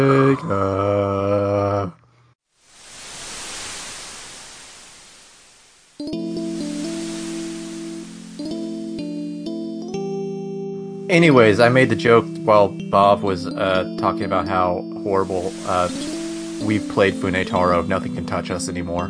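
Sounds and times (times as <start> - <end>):
speech: 0.0 - 0.8, 11.1 - 19.0
crashing ocean wave sound effect: 2.5 - 9.6, 15.2 - 18.2
electronic musical tones: 6.0 - 10.2, 12.8 - 18.4.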